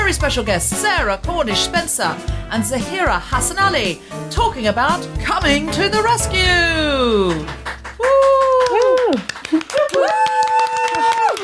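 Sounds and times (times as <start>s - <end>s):
speech: 0.1s - 11.4s
scattered claps imitating a studio audience: 7.3s - 11.4s.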